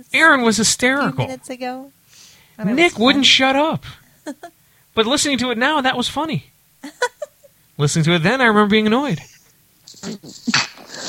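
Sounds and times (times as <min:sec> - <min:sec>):
speech: 0:00.0 - 0:02.0, 0:02.6 - 0:07.1, 0:07.8 - 0:09.3, 0:09.9 - 0:10.7
stifled sneeze: 0:10.0 - 0:11.0.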